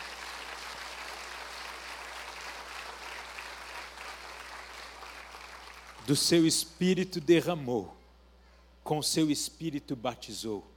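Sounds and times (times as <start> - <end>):
audience applause: 0.0 - 6.1
speech: 6.1 - 8.0, 8.9 - 10.7.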